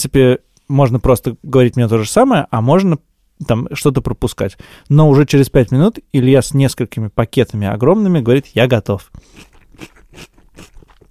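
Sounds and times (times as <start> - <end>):
speech: 0.0 - 10.3
person biting and chewing a cucumber: 9.1 - 11.0.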